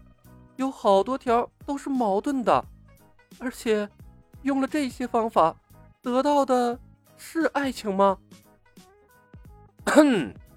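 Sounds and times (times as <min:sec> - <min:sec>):
speech: 0:00.6 - 0:02.7, 0:03.3 - 0:08.4, 0:10.0 - 0:10.4
person coughing: 0:09.9 - 0:10.4
throat clearing: 0:09.9 - 0:10.4.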